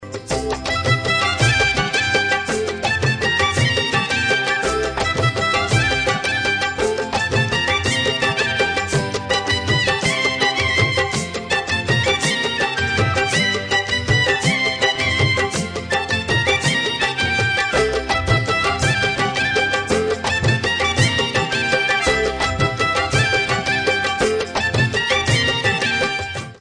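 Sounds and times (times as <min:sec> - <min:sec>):
music: 0:00.0 - 0:26.5.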